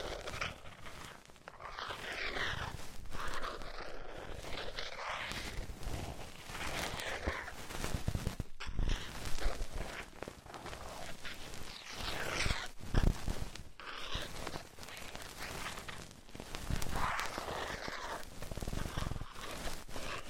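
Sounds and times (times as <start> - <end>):
ear cleaning with rhinestone and clay removal scratching and rubbing: 0.0 - 20.2.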